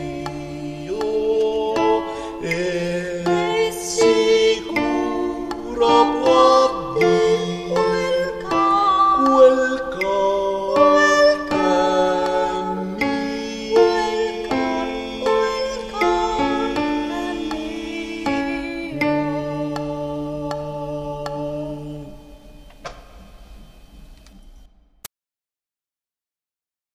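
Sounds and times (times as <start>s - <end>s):
contralto voices in choir: 0.0s - 24.2s.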